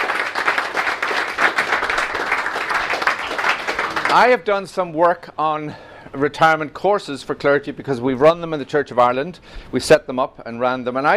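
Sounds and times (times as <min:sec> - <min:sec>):
audience applause: 0:00.0 - 0:04.4
speech: 0:04.1 - 0:11.1.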